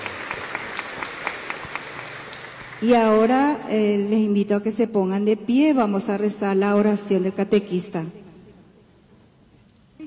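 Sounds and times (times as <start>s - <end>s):
congregation of parents and families clapping at a church catechism gathering: 0.0s - 2.8s
speech: 2.8s - 8.2s.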